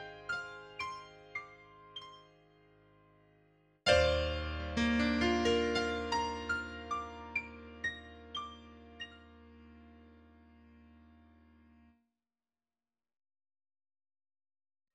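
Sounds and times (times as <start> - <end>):
piano: 0.0 - 11.9.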